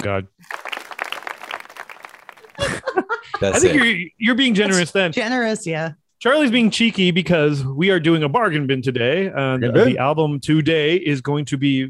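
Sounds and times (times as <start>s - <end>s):
speech: 0.0s - 0.7s, 3.0s - 11.8s
crowd applause sound effect: 0.4s - 3.5s
laughter: 2.4s - 4.1s.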